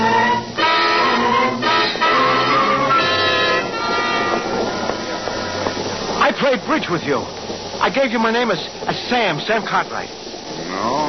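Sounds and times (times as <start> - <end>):
whining horn-like tones: 0.0 - 6.1
passenger train running on rails: 0.0 - 10.6
speech: 6.5 - 11.0.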